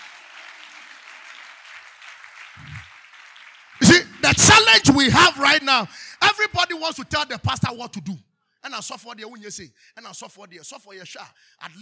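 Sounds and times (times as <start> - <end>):
audience clapping: 0.0 - 6.9
speech: 4.3 - 11.7.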